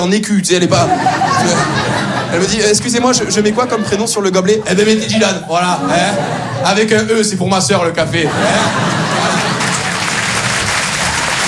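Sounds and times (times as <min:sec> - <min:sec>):
speech: 0:00.0 - 0:09.0
laughter: 0:00.6 - 0:11.4
audience applause at a comedy show in Paris: 0:08.3 - 0:11.4.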